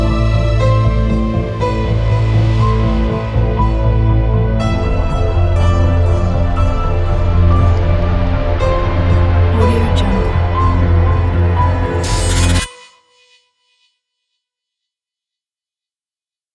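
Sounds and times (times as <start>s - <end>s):
serious technological lyrical sad background music: 0.0s - 11.7s.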